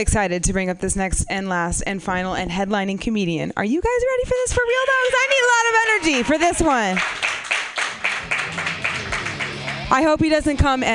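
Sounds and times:
speech: 0:00.0 - 0:07.3, 0:09.9 - 0:10.9
audience clapping: 0:05.0 - 0:10.8.

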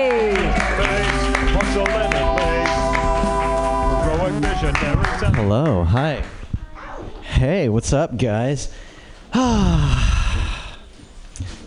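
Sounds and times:
audience applause: 0:00.0 - 0:06.4
loud sustained music with bright held tones and a regular beat: 0:00.1 - 0:05.4
speech: 0:04.6 - 0:06.4, 0:07.4 - 0:10.1.

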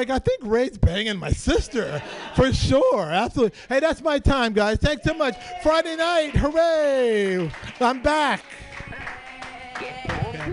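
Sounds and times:
speech: 0:00.0 - 0:08.7
laughter: 0:01.5 - 0:03.2
scattered cheers: 0:05.0 - 0:10.5
audience clapping: 0:05.1 - 0:10.5.

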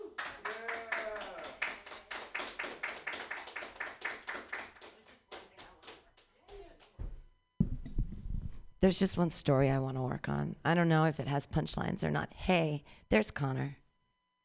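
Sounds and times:
audience clapping: 0:00.0 - 0:07.0
speech: 0:08.8 - 0:13.8.

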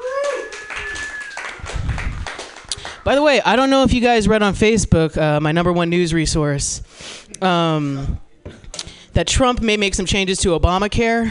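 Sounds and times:
cheers: 0:00.0 - 0:03.0
whistles: 0:00.0 - 0:03.0
audience applause: 0:00.0 - 0:03.2
speech: 0:03.0 - 0:08.6, 0:09.2 - 0:11.2.

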